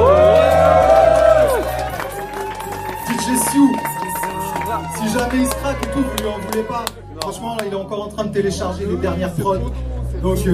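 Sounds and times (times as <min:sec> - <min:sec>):
crowd cheering and whooping: 0:00.0 - 0:06.9
speech: 0:07.6 - 0:10.5.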